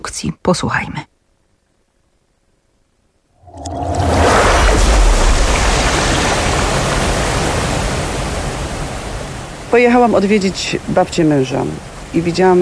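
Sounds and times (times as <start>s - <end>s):
speech: 0.2s - 1.1s, 9.7s - 12.6s
Oder river water rushing into the Racibórz Dolny reservoir: 3.4s - 12.6s.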